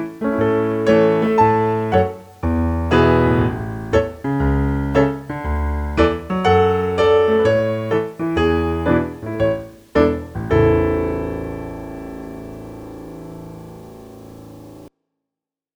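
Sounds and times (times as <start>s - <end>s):
basslines: 0.0s - 14.9s
piano: 0.0s - 14.9s.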